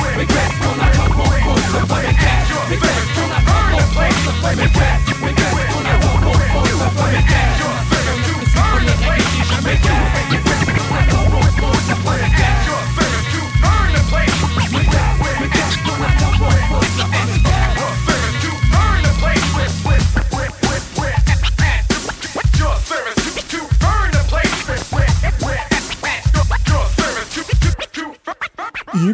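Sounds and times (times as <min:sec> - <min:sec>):
French rap music: 0:00.0 - 0:29.1
turntable scratching: 0:00.0 - 0:29.1.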